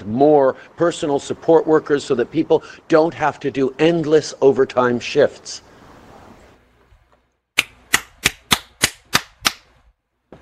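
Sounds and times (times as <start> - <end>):
speech: 0.0 - 5.7
hand clapping: 7.6 - 9.7.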